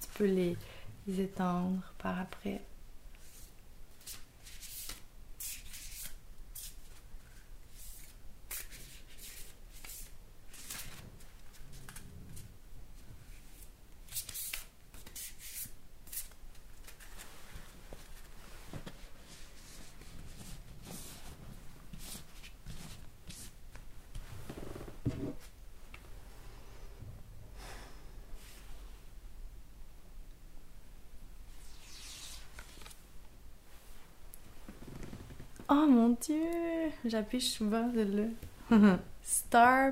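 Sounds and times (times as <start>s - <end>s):
speech: 0.2s - 2.7s, 36.1s - 39.9s
deck of cards shuffled by hand: 3.2s - 12.5s, 13.4s - 24.2s, 31.6s - 33.0s.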